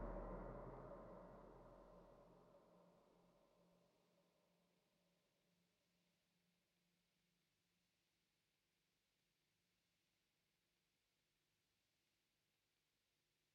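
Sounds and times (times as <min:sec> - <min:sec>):
main ambience: 0:00.0 - 0:02.0.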